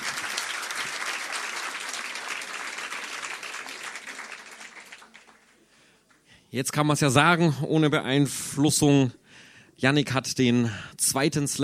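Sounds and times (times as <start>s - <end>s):
audience applause: 0.0s - 5.6s
speech: 6.5s - 9.2s, 9.8s - 11.6s.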